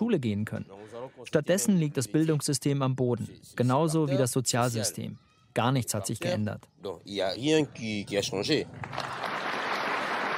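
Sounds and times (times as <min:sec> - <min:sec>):
speech: 0:00.1 - 0:09.2
archival crowd applause for Belgian King Baudouin: 0:08.8 - 0:10.3.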